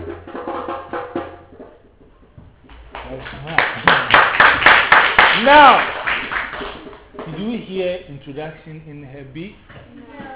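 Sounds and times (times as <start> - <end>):
group clapping for a girl: 2.6 - 7.6
speech: 8.4 - 9.7.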